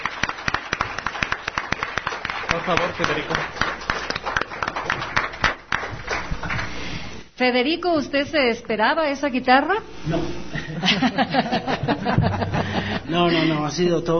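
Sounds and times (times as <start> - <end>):
applause: 0.0 - 6.9
speech: 2.5 - 4.0, 7.4 - 14.1
laughter: 6.1 - 6.7, 10.5 - 13.7.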